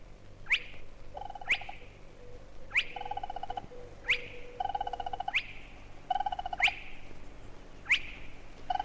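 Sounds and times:
spotted crake abrupt whip-like whistle: 0.4s - 1.8s, 2.7s - 6.9s, 7.8s - 8.8s.

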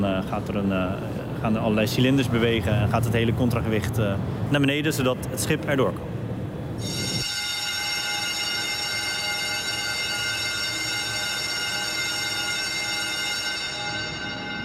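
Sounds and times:
speech: 0.0s - 6.2s, 6.8s - 7.0s
drawbridge warning bell ringing: 6.8s - 14.6s.

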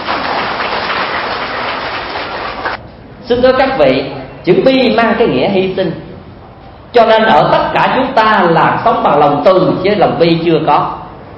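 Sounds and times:
audience applause: 0.0s - 2.8s
speech: 3.3s - 6.0s, 6.9s - 11.0s.

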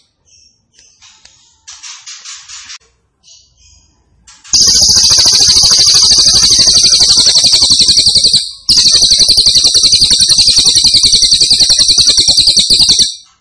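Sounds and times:
grey-cheeked tit-babbler singing buzzing trills: 4.6s - 13.1s.

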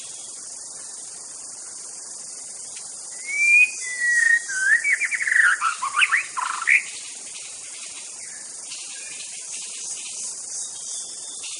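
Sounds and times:
faint insect hiss: 0.0s - 11.5s
white-rumped shama whistle: 3.1s - 6.9s.

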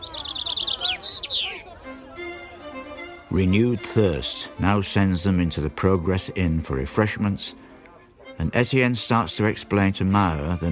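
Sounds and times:
finch singing in a singing competition: 0.0s - 1.7s
speech: 3.3s - 7.7s, 8.4s - 10.7s.

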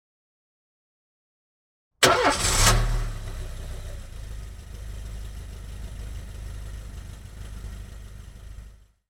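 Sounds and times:
car engine starting and idling: 2.0s - 9.0s.

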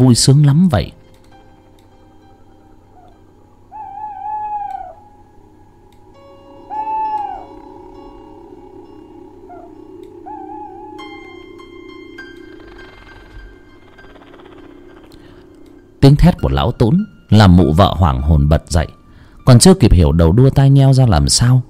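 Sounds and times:
speech: 0.0s - 1.0s, 16.0s - 21.6s
owl screeching eerily: 2.4s - 5.2s, 6.5s - 15.6s.

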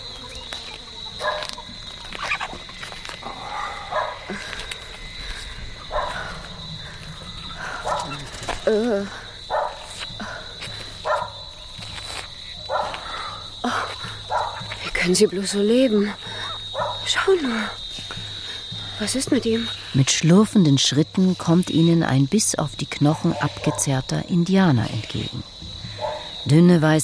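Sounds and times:
flies buzzing: 0.0s - 26.6s
stray dogs barking: 1.2s - 2.7s, 3.5s - 4.4s, 5.7s - 8.4s, 9.4s - 10.0s, 11.0s - 11.5s, 12.6s - 13.2s, 14.1s - 14.8s, 16.4s - 17.2s, 23.1s - 24.0s, 25.9s - 26.3s
speech: 8.7s - 9.2s, 15.1s - 16.3s, 17.1s - 17.8s, 19.0s - 25.6s, 26.5s - 27.0s.

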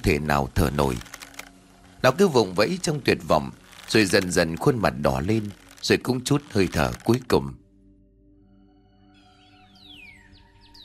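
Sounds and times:
speech: 0.0s - 1.1s, 2.0s - 7.6s
birds singing in trees in the morning: 9.0s - 10.8s.

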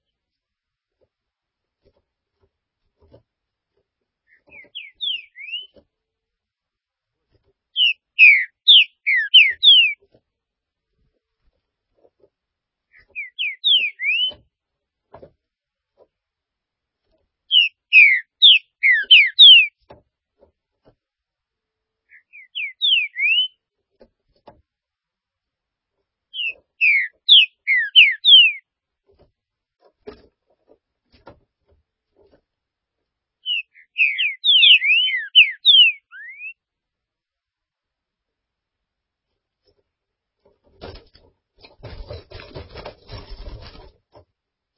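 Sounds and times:
green-winged saltator whistled song: 4.5s - 5.8s, 7.8s - 10.0s, 13.2s - 14.4s, 17.5s - 19.8s, 22.1s - 23.6s, 26.4s - 28.6s, 33.4s - 36.6s.

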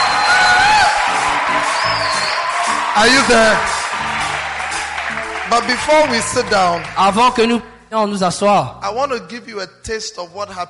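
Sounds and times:
high whistles and whoops: 0.0s - 3.7s
crowd applauding: 0.0s - 7.6s
speech: 3.0s - 3.8s, 5.5s - 10.6s.

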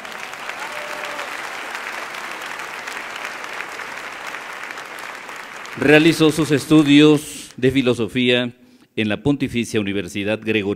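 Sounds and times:
audience applause: 0.0s - 7.6s
speech: 5.8s - 10.7s.

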